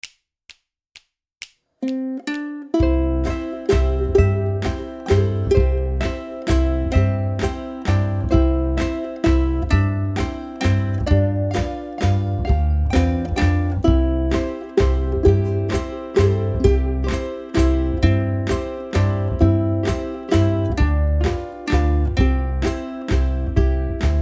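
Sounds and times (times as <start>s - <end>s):
ukulele backing: 1.8s - 24.2s.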